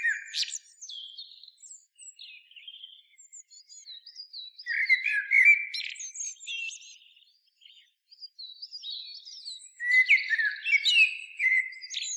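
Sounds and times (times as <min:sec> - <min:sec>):
common blackbird singing: 0:00.0 - 0:12.1.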